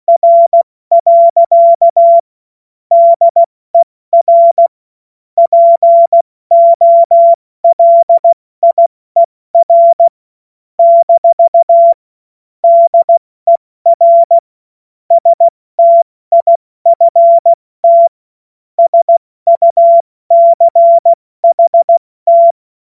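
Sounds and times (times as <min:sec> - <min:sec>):
CW Morse code beeps: 0:00.1 - 0:02.2, 0:02.9 - 0:03.5, 0:04.2 - 0:04.7, 0:05.4 - 0:10.2, 0:10.8 - 0:12.0, 0:12.6 - 0:14.4, 0:15.1 - 0:18.2, 0:18.8 - 0:22.6.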